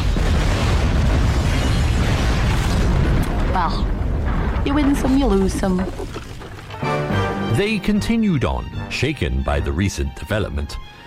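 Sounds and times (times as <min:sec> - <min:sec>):
violent explosion: 0:00.0 - 0:06.7
crash: 0:00.0 - 0:06.9
speech: 0:04.7 - 0:06.0, 0:07.6 - 0:11.0.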